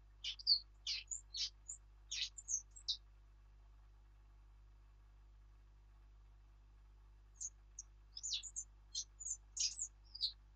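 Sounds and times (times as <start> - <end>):
Sylvia atricapilla: 0.2 - 3.0, 7.4 - 10.5.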